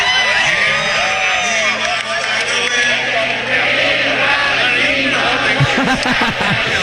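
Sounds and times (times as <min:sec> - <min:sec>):
concert audience of thousands singing along together: 0:00.0 - 0:06.8
laughter: 0:05.5 - 0:06.8.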